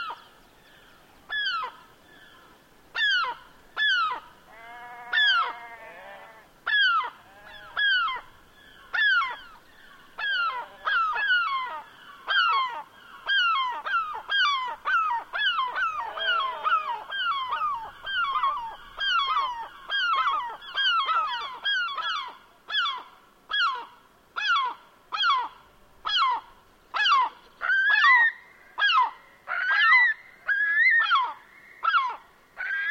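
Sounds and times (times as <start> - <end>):
seabirds calling on moorland: 0.0 - 32.8
sheep calling on moorland: 4.5 - 6.5, 7.2 - 8.0, 15.8 - 18.4.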